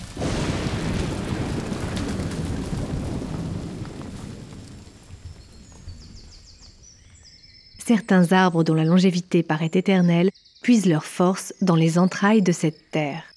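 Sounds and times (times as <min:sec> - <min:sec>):
thunderstorm: 0:00.0 - 0:07.3
speech: 0:07.9 - 0:13.3.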